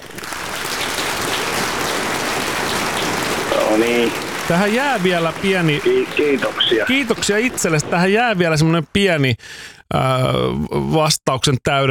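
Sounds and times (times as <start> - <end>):
applause: 0.0 - 8.5
speech: 3.8 - 11.8.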